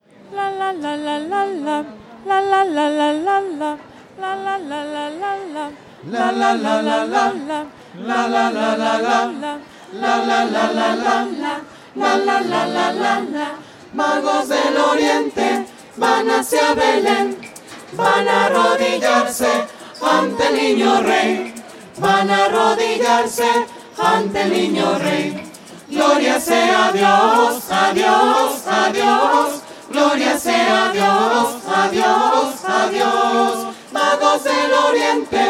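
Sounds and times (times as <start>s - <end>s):
voices of the Three Kings: 0.2s - 35.4s.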